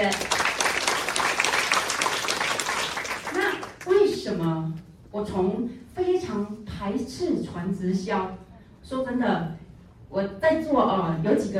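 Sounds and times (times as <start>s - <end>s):
audience applause: 0.0s - 3.8s
speech: 4.4s - 11.5s.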